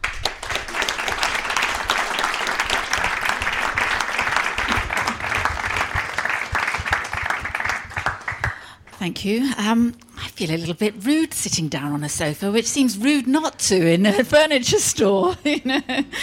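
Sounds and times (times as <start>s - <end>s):
audience applause welcoming a guest speaker at a book event in a furniture store: 0.0s - 8.8s
speech: 9.0s - 16.2s.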